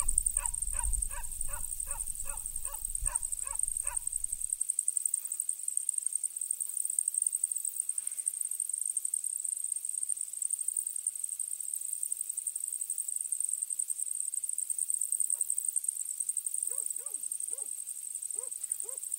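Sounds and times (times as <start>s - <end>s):
goats: 0.0s - 4.4s
early morning crickets: 0.0s - 19.1s.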